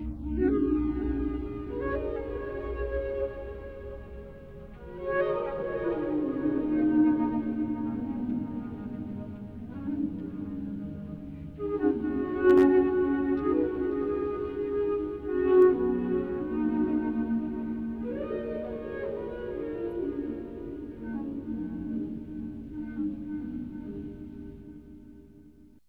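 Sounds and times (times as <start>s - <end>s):
ghostly flute ambience: 0.0s - 25.7s.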